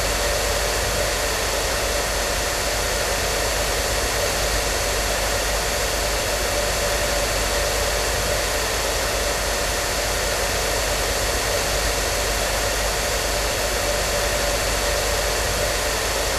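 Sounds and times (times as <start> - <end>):
hair dryer running as white noise: 0.0 - 16.3.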